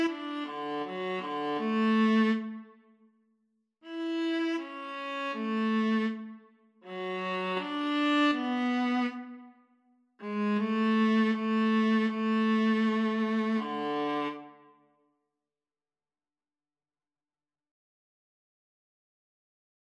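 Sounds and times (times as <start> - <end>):
viola duet: 0.0 - 2.7, 3.8 - 9.5, 10.2 - 14.6.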